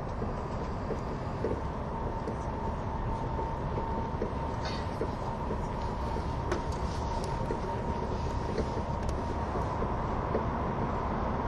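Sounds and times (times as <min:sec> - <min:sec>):
train rumbling on the Gotthard base tunnel route: 0:00.0 - 0:11.4.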